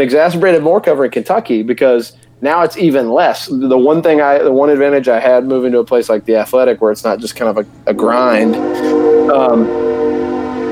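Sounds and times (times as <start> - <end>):
speech: 0.0 - 9.9
train horn by a house in Nashville: 8.0 - 10.6.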